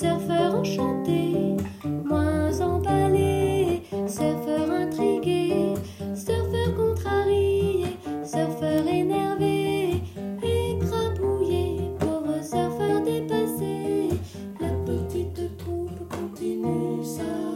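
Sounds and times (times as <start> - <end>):
guitar: 0.0 - 17.5
person singing: 0.0 - 17.5.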